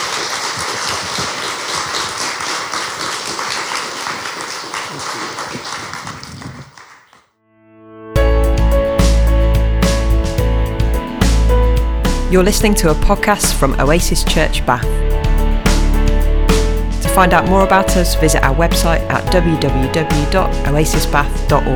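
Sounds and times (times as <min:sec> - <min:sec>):
audience applause: 0:00.0 - 0:07.2
loud music with sustained tones: 0:08.2 - 0:21.7
speech: 0:12.3 - 0:15.0, 0:17.2 - 0:21.7.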